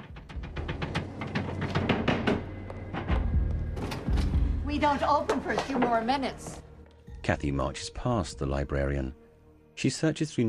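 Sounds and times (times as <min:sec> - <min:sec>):
knocking on the door of the Amityville Public Library: 0:00.0 - 0:04.2
speech: 0:04.8 - 0:06.6, 0:07.2 - 0:09.2, 0:09.8 - 0:10.4.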